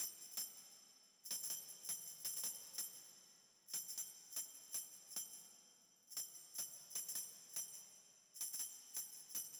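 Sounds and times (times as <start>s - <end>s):
tambourine: 0.0s - 9.5s.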